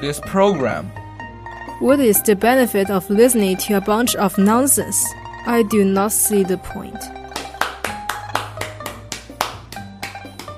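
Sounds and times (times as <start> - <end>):
speech: 0.0 - 1.0, 1.8 - 7.2
sharp hand claps: 7.3 - 10.5.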